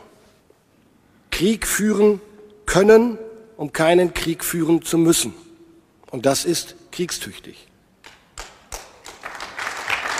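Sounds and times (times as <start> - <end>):
speech: 1.4 - 5.5, 6.1 - 7.7
generals applauding hesitantly in a hall: 8.0 - 10.1.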